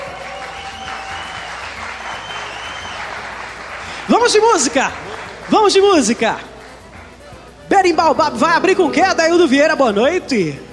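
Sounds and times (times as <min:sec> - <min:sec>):
audience applause: 0:00.0 - 0:07.1
speech: 0:04.1 - 0:06.5, 0:07.8 - 0:10.7.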